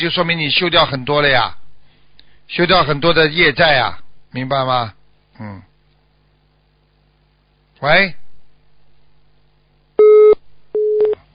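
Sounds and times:
speech: 0:00.0 - 0:01.6, 0:02.5 - 0:05.7, 0:07.8 - 0:08.2
telephone busy tone after line dropped: 0:10.0 - 0:11.2.

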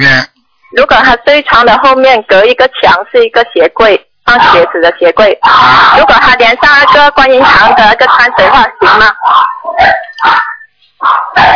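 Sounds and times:
speech: 0:00.0 - 0:11.5
dog barking: 0:04.3 - 0:04.8, 0:05.4 - 0:11.5.

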